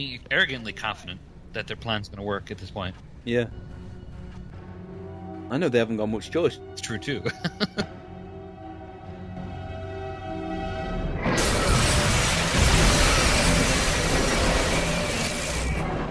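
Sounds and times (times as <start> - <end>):
speech: 0.0 - 3.8, 5.5 - 8.0
laughter: 7.2 - 8.0
spaceship explosion sound effect: 11.2 - 16.0.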